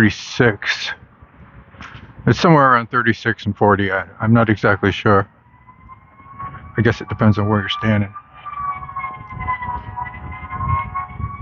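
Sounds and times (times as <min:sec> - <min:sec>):
speech: 0:00.0 - 0:01.0, 0:02.2 - 0:05.4, 0:06.8 - 0:08.2
continuous low traffic rumble: 0:00.0 - 0:11.4
fire engine siren passing in town: 0:01.0 - 0:02.3, 0:03.8 - 0:11.4.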